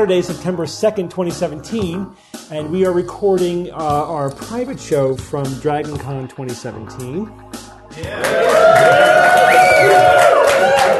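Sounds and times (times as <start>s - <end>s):
speech: 0.0s - 10.2s
audience cheering and whooping at a live recorded show at DragonCon 2017: 8.0s - 10.9s.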